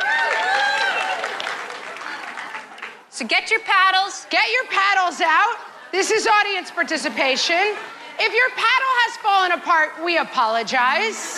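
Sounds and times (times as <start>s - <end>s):
raised voices and whoops: 0.0s - 1.4s
audience clapping: 0.0s - 3.1s
speech: 3.2s - 11.3s.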